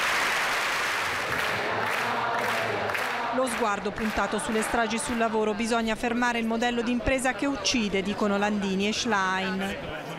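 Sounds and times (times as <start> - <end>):
theatre audience ovation with steady clapping: 0.0 - 5.4
speech: 3.4 - 10.1
faint murmur of voices: 4.4 - 10.1.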